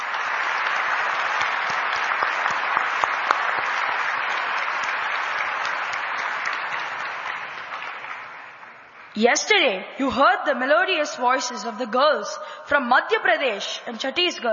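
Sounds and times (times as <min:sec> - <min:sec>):
audience applause: 0:00.0 - 0:09.1
speech: 0:09.2 - 0:14.5.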